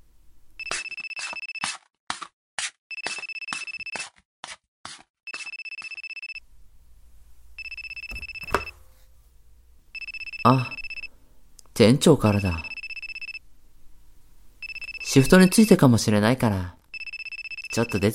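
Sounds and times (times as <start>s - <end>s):
mobile phone ringtone: 2.9s - 4.0s, 5.3s - 6.4s, 7.6s - 8.7s, 10.0s - 11.1s, 12.3s - 13.4s, 14.6s - 15.8s, 16.9s - 18.1s
speech: 10.5s - 10.7s, 11.8s - 12.7s, 15.1s - 16.8s, 17.8s - 18.1s.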